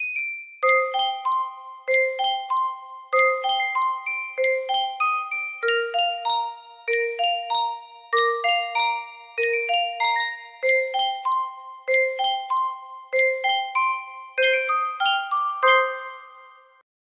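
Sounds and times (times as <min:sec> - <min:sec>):
yunsheng music box: 0:00.0 - 0:16.8.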